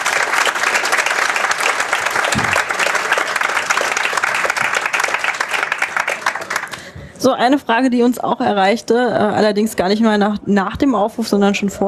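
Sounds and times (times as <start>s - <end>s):
audience applause: 0.0s - 6.9s
speech: 7.2s - 11.8s.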